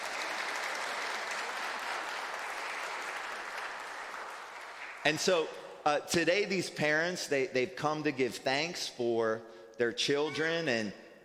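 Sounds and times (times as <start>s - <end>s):
audience applause: 0.0s - 5.2s
speech: 5.0s - 11.2s.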